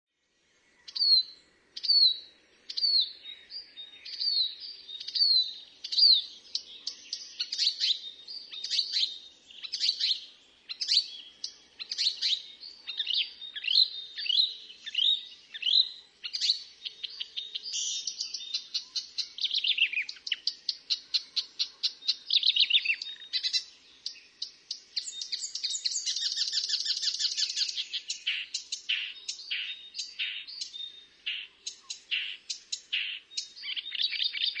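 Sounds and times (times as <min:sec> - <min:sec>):
Marsh warbler song chatter: 0:00.2 - 0:34.5.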